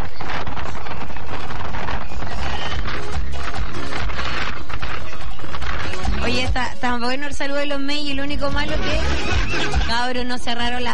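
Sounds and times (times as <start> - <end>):
strong wind in Los Angeles against the microphone: 0.0 - 10.0
speech: 7.0 - 10.9.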